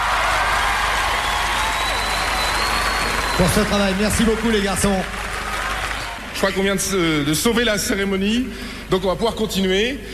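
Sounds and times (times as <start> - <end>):
awards ceremony audience applause: 0.0 - 6.4
speech: 3.4 - 5.3, 6.4 - 10.1.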